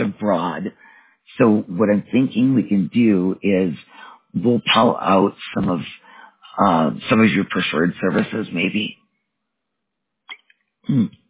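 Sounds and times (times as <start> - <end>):
speech: 1.4 - 6.0, 6.6 - 9.0, 10.9 - 11.2
faint throaty catch: 10.3 - 11.2
person coughing after swallowing the wrong way: 10.9 - 11.1.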